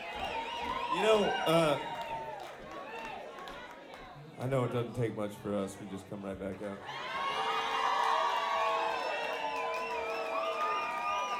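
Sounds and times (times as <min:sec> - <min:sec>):
live audience cheering and applauding: 0:00.0 - 0:04.2, 0:06.8 - 0:11.3
speech: 0:01.0 - 0:01.9, 0:04.4 - 0:07.1.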